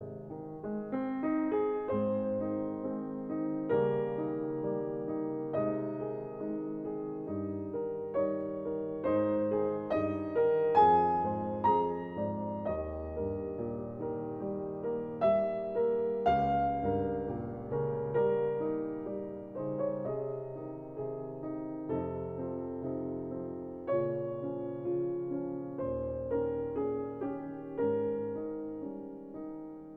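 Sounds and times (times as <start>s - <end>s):
piano sonata: 0.0s - 29.9s.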